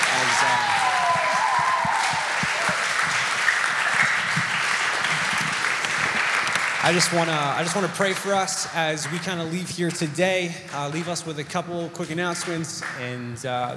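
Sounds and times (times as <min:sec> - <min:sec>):
audience applause: 0:00.0 - 0:09.5
speech: 0:06.8 - 0:13.7.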